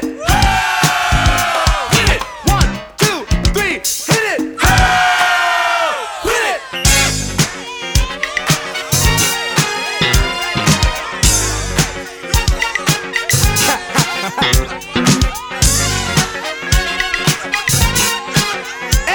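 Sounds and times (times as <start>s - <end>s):
crowd screaming: 0.2s - 2.6s, 4.6s - 19.1s
laughter: 4.3s - 19.1s.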